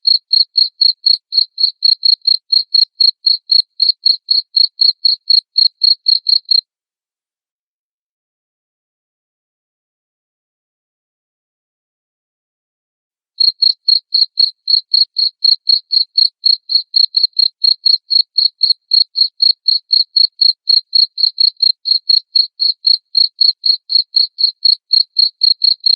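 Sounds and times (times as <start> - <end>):
cricket chirping: 0.0 - 6.6, 13.4 - 25.9.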